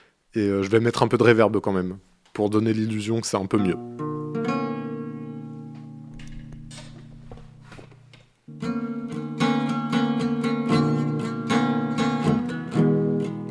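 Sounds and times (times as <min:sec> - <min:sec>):
speech: 0:00.4 - 0:04.1
out-of-tune acoustic guitar playing chords and rhythmic strums: 0:03.6 - 0:06.6, 0:08.5 - 0:13.4.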